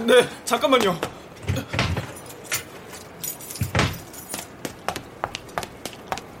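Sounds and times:
speech: 0.2 - 1.2
keys jangling: 2.0 - 4.5.

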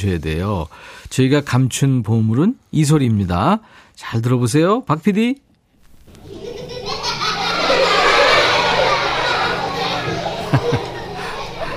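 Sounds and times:
speech: 0.0 - 5.5
many children laughing and shrieking: 6.2 - 11.7.

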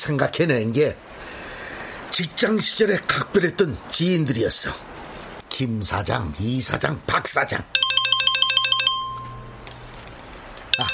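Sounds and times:
speech: 0.0 - 1.4, 2.1 - 8.2, 10.8 - 10.9
phone ringing: 7.8 - 9.6, 10.7 - 10.9.

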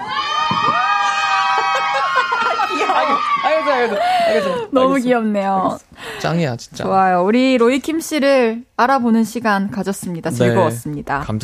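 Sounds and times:
audience shouting and cheering: 0.0 - 4.7
laughter: 1.2 - 4.8
speech: 2.9 - 11.4.

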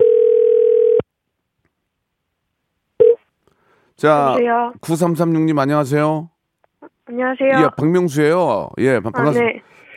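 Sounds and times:
telephone tone: 0.0 - 1.0
speech: 4.0 - 6.3, 7.2 - 9.9.

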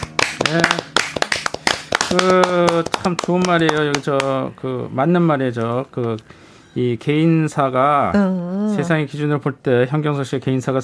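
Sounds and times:
hand clapping: 0.0 - 4.4
speech: 0.5 - 0.8, 2.1 - 10.8.

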